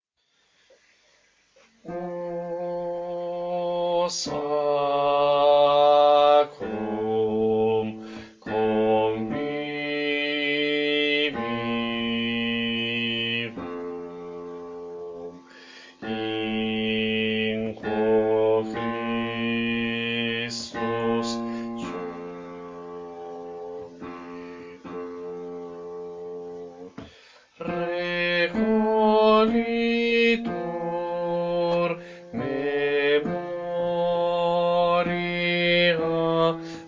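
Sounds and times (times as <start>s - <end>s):
bass section of a choir singing: 2.7s - 14.0s, 16.0s - 22.4s, 27.6s - 36.6s.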